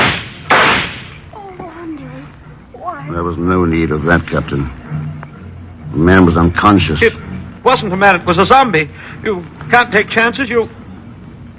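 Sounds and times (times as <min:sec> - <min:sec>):
gunshot in a radio drama: 0:00.0 - 0:01.2
hiss: 0:00.0 - 0:11.5
speech: 0:03.0 - 0:05.1, 0:05.9 - 0:10.8.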